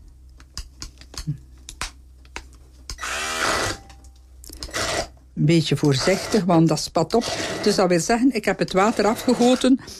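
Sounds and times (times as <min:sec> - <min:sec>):
clicks and taps of blender going into cooked chickpeas: 0:00.0 - 0:03.0
speech: 0:01.2 - 0:01.5, 0:05.4 - 0:09.9
hand blender mixing cooked chickpeas: 0:03.0 - 0:03.8, 0:04.6 - 0:05.1, 0:05.8 - 0:08.0, 0:08.7 - 0:09.8.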